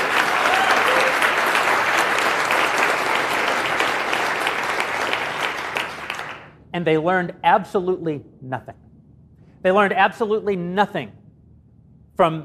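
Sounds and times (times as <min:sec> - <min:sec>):
audience applause: 0:00.0 - 0:06.6
speech: 0:06.8 - 0:08.8, 0:09.6 - 0:11.2, 0:12.2 - 0:12.4.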